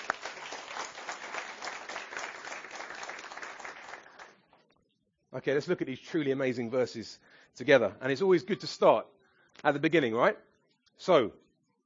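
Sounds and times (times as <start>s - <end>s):
audience applause: 0.0s - 4.4s
speech: 5.4s - 11.4s.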